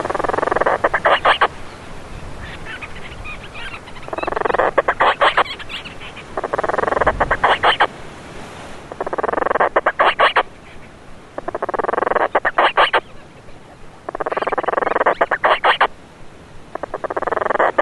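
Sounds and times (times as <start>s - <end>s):
Painho bird calling on Graciosa in Madeira and the Azores: 0.0s - 7.9s, 8.9s - 15.9s.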